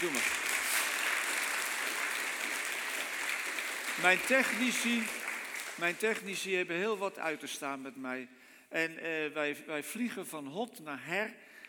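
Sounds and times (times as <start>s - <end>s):
speech: 0.0s - 0.4s, 4.0s - 5.2s, 5.8s - 11.5s
audience applause: 0.0s - 6.2s.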